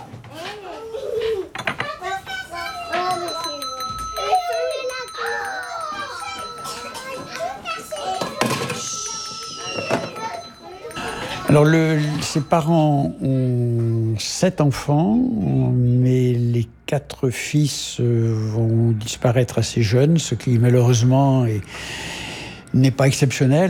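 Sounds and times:
bell ringing: 0:02.5 - 0:14.0
speech: 0:11.5 - 0:22.1, 0:22.7 - 0:23.6.

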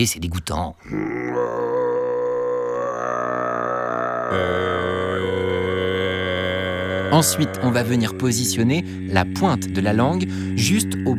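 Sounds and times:
speech: 0:00.0 - 0:01.4, 0:04.3 - 0:04.6, 0:07.1 - 0:11.1
low throat-singing drone: 0:00.9 - 0:11.1.

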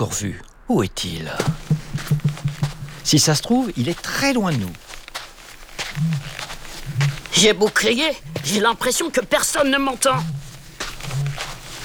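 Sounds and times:
speech: 0:00.0 - 0:02.3, 0:03.0 - 0:04.9, 0:07.0 - 0:10.4
faint hiss of outdoor noise: 0:00.0 - 0:11.8
male ostrich booming call: 0:01.4 - 0:03.0.

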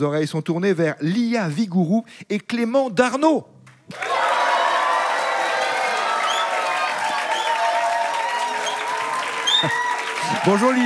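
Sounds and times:
speech: 0:00.0 - 0:04.2, 0:10.4 - 0:10.8
audience applauding: 0:03.9 - 0:10.8.

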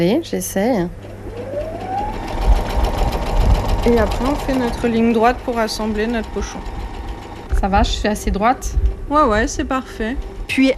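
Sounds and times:
speech: 0:00.0 - 0:01.1, 0:03.8 - 0:06.7, 0:07.6 - 0:10.7
sewing machine stitching a small fabric pouch: 0:01.2 - 0:07.5.

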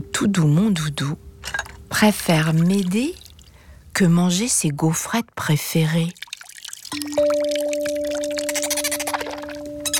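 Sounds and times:
speech: 0:00.0 - 0:03.2, 0:04.0 - 0:06.2
splashing bubbling water: 0:02.4 - 0:03.6, 0:06.0 - 0:09.9
dolphin calls: 0:08.2 - 0:09.9.

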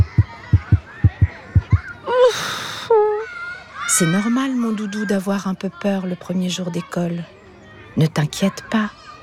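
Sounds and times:
heartbeat pounding hard from fear in a children's story: 0:00.0 - 0:01.9
short higher tonal sounds with a breathy edge: 0:00.0 - 0:03.3
speech: 0:04.0 - 0:07.4, 0:08.0 - 0:09.1.

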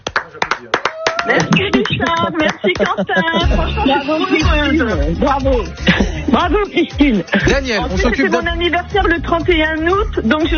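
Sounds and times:
audience applause: 0:00.0 - 0:03.1
speech: 0:00.6 - 0:10.5
laughter: 0:01.0 - 0:08.4.

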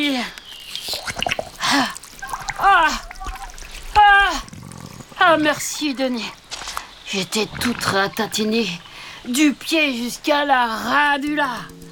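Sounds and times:
water poured from a flask onto a body: 0:00.4 - 0:09.4
speech: 0:05.3 - 0:06.4, 0:07.1 - 0:11.8.

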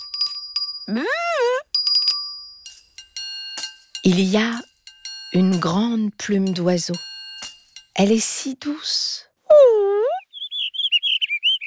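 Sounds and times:
small bell ringing: 0:00.0 - 0:08.0
speech: 0:00.9 - 0:01.3, 0:04.0 - 0:04.7, 0:05.3 - 0:07.1, 0:08.0 - 0:09.3
swooping voice-like tone: 0:00.9 - 0:01.6, 0:09.5 - 0:10.2.

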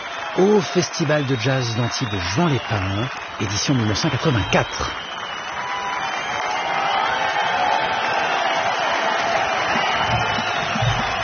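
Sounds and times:
audience clapping and cheering at the 1984 Antibes Juan-les-Pins jazz festival: 0:00.0 - 0:11.2
speech: 0:00.4 - 0:05.0.

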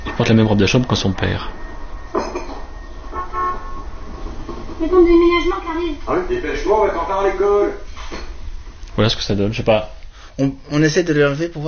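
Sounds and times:
low rumble of road noise: 0:00.0 - 0:11.4
speech: 0:00.2 - 0:01.6, 0:05.0 - 0:07.8, 0:09.0 - 0:11.6
car horn toots: 0:03.1 - 0:04.0.

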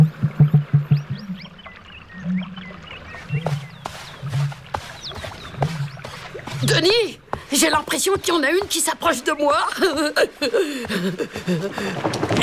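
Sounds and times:
male bird's loud courtship call: 0:00.0 - 0:07.4
smaller birds chirping and twittering: 0:00.0 - 0:11.5
speech: 0:06.8 - 0:12.4
laughter: 0:09.5 - 0:12.4.

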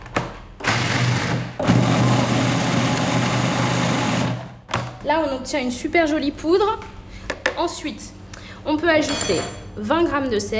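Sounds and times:
blender grinding peanuts into powder: 0:00.6 - 0:04.6
speech: 0:05.1 - 0:06.9, 0:07.6 - 0:10.5.

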